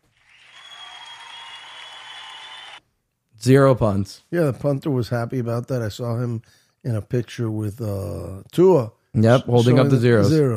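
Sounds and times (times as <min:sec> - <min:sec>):
applause: 0:00.0 - 0:02.8
speech: 0:03.4 - 0:10.5.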